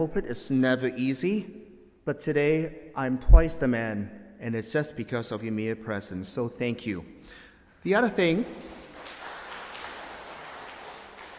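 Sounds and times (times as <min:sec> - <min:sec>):
speech: 0:00.0 - 0:08.8
audience clapping: 0:08.4 - 0:11.3.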